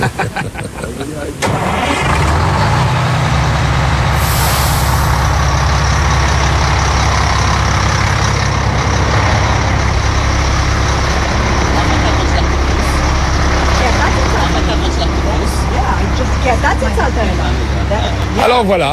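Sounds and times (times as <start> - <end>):
laughter: 0.0 - 1.4
big tour bus engine starting and rumbling: 0.0 - 18.9
bus air brakes hissing on release: 4.1 - 6.5.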